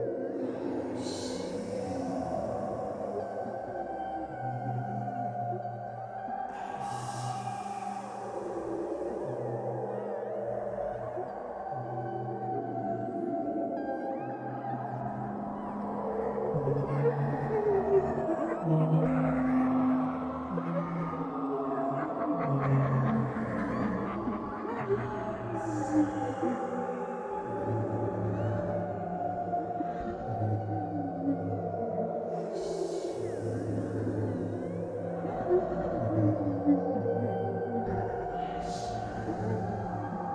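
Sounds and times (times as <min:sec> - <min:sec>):
ghostly turmoil atmosphere: 0:00.0 - 0:40.3.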